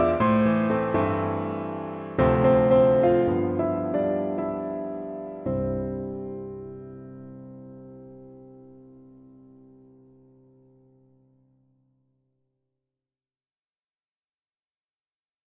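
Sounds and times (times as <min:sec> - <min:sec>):
piano duet: 0:00.0 - 0:12.0.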